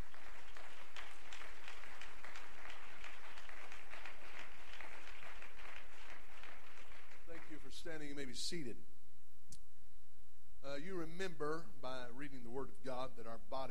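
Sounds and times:
audience clapping: 0.0s - 8.1s
speech: 7.8s - 8.9s, 10.7s - 13.6s.

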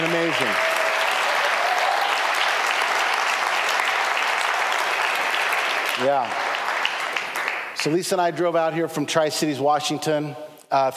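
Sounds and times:
audience hand clapping for pastors: 0.0s - 7.8s
speech: 6.0s - 6.4s, 7.8s - 10.9s.

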